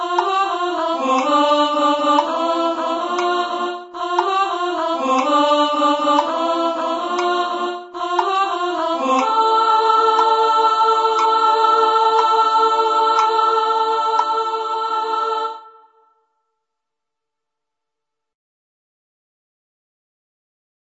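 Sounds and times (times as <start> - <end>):
soprano singing: 0.0 - 16.0.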